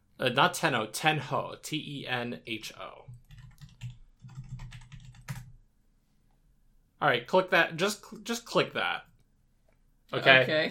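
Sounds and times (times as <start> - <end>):
speech: 0.2 - 3.1, 7.0 - 9.1, 10.1 - 10.6
computer keyboard typing: 3.1 - 5.6.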